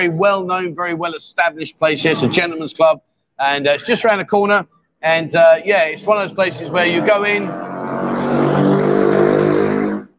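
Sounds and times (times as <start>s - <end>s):
speech: 0.0s - 7.7s
motorbike riding up the road, engine droning: 5.9s - 10.1s.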